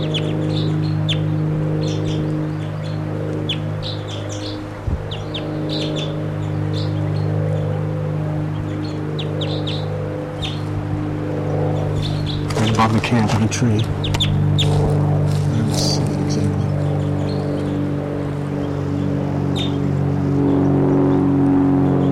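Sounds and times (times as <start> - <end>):
wild bird calling in short high chirps and tweets: 0.0 - 7.7, 8.5 - 10.7, 11.6 - 17.9
steady low mechanical hum: 0.0 - 22.1
speech: 12.9 - 14.0.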